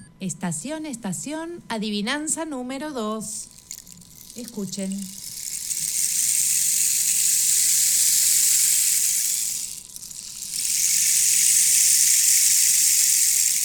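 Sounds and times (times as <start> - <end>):
speech: 0.2 - 3.6, 4.3 - 5.2
rain hissing: 3.6 - 13.6.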